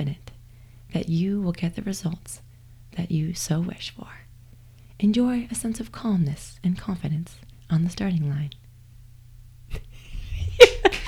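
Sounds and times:
speech: 0.9 - 4.2, 5.0 - 8.6
laughter: 9.7 - 11.0
low hum: 10.0 - 11.0
hands clapping: 10.6 - 11.0.

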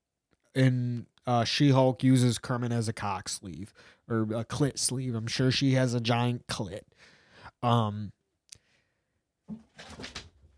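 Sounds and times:
speech: 0.5 - 8.2, 9.5 - 10.2
cats running around, scrabbling thumps: 9.5 - 10.5.

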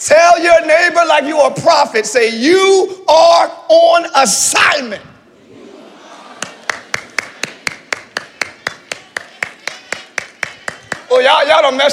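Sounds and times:
speech: 0.0 - 5.1, 11.2 - 11.9
laughter: 5.2 - 10.2
one person clapping hands: 6.4 - 11.1.

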